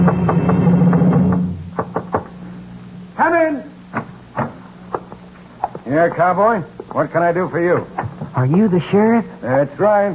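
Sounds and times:
knocking on a door: 0:00.0 - 0:02.3
low steady hum: 0:00.0 - 0:10.1
speech: 0:05.9 - 0:10.1.

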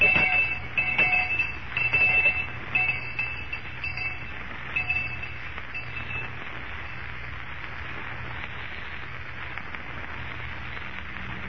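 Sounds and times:
school lunch bell ringing: 0:00.0 - 0:06.3.

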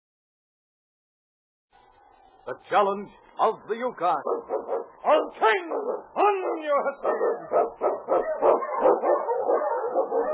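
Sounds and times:
speech: 0:02.4 - 0:10.3
Eskimo sled dog barking in a storm-and-snow trail scene: 0:04.2 - 0:10.3.

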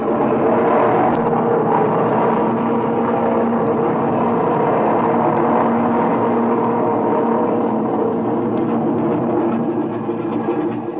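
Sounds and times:
aircraft engine run-up before takeoff: 0:00.0 - 0:10.9.

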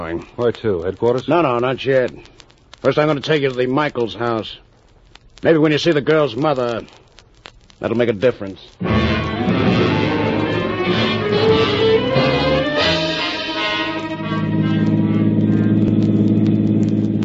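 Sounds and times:
speech: 0:00.0 - 0:04.6, 0:05.4 - 0:07.0, 0:07.8 - 0:09.1
car driving: 0:08.8 - 0:17.2.

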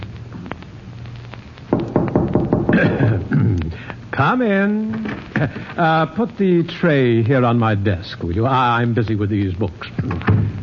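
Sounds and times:
knocking on a door: 0:01.7 - 0:03.2
speech: 0:04.2 - 0:10.5.

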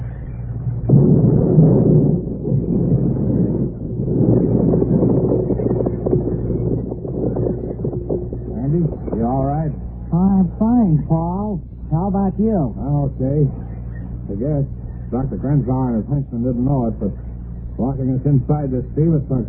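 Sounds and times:
atomic bomb explosion: 0:00.0 - 0:12.1
speech: 0:12.4 - 0:13.7, 0:14.3 - 0:19.4.

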